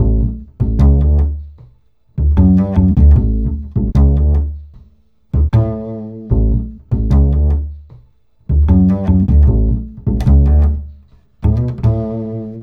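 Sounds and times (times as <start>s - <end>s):
acoustic bass: 0.0s - 12.6s.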